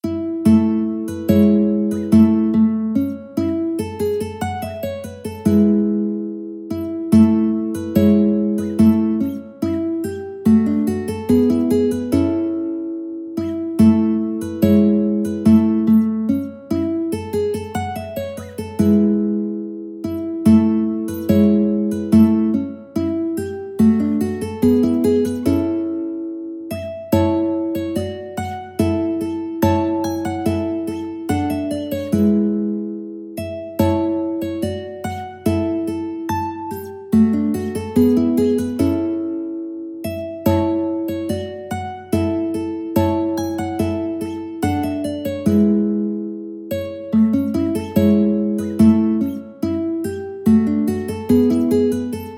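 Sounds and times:
mandolin: 0:00.0 - 0:52.3.

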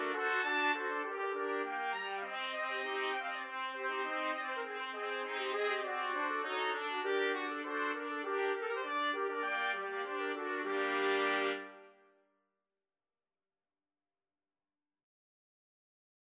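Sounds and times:
trumpet quartet playing a baroque piece: 0:00.0 - 0:11.9.

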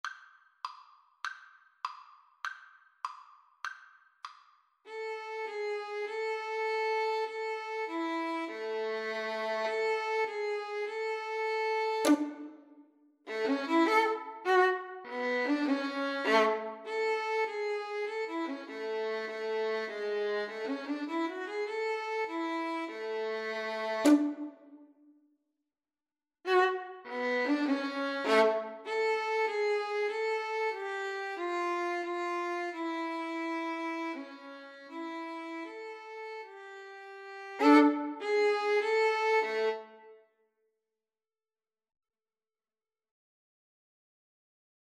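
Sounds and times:
violin melody: 0:04.9 - 0:24.8, 0:26.5 - 0:40.2.

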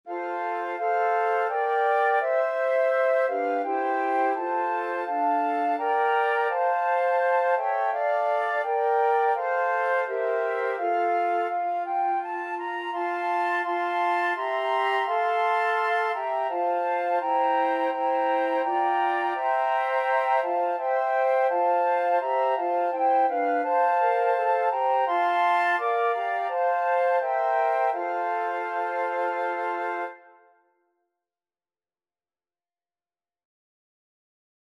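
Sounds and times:
flute quartet playing: 0:00.1 - 0:30.4.

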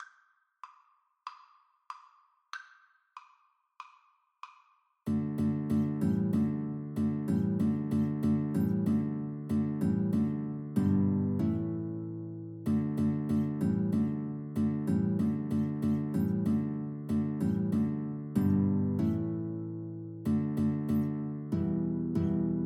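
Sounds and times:
guitar duet: 0:05.1 - 0:22.6.

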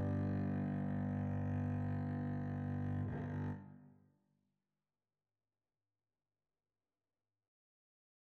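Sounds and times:
double bass piece: 0:00.0 - 0:03.6.

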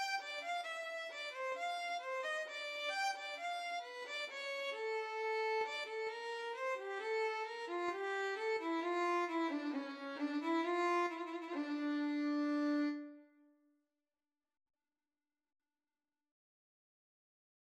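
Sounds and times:
bourree violin and viola duet: 0:00.0 - 0:13.2.

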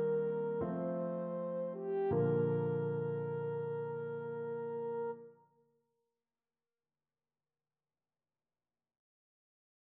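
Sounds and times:
French horn: 0:00.0 - 0:05.2.

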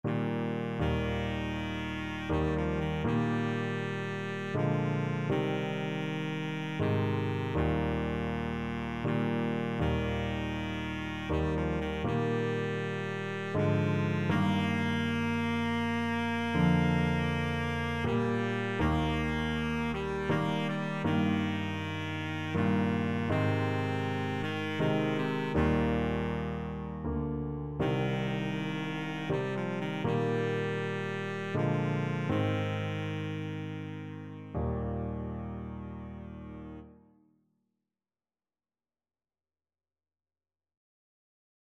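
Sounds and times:
baritone saxophone: 0:00.0 - 0:36.9.

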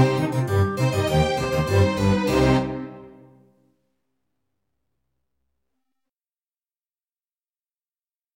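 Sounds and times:
alto saxophone playing a classical piece: 0:00.0 - 0:03.4.

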